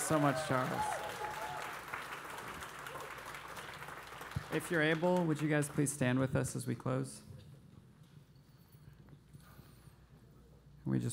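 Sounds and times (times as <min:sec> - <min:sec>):
audience applause: 0:00.0 - 0:06.0
speech: 0:00.1 - 0:01.0, 0:04.5 - 0:07.3, 0:10.9 - 0:11.1.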